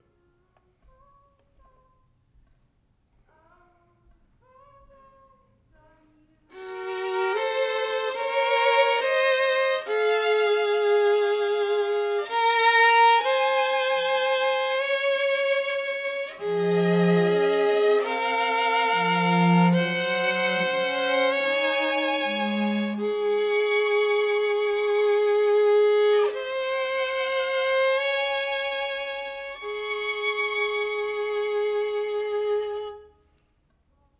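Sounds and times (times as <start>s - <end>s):
violin: 6.5s - 33.2s.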